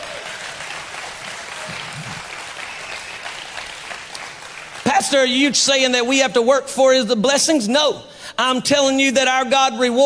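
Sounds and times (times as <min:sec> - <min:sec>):
crowd clapping: 0:00.0 - 0:05.7
speech: 0:05.0 - 0:10.0.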